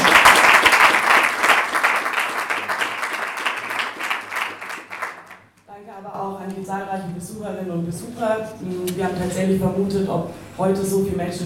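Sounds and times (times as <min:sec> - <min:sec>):
audience applause: 0:00.0 - 0:05.5
speech: 0:08.3 - 0:11.4.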